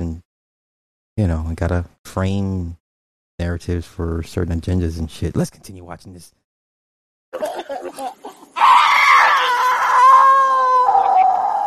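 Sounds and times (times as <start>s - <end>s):
speech: 1.2s - 2.8s, 3.4s - 6.4s, 7.3s - 7.5s
laughter: 7.4s - 8.6s
woman howling and screaming: 8.6s - 11.6s.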